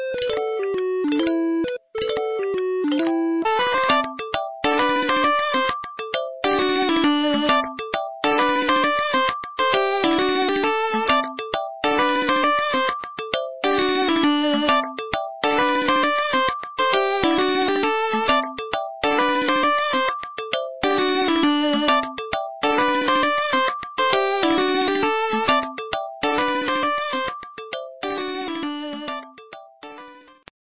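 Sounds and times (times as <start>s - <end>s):
game over jingle: 0.2s - 30.4s.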